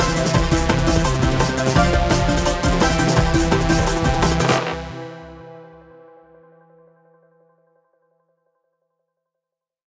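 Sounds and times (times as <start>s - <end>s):
instrumental music: 0.0s - 6.6s.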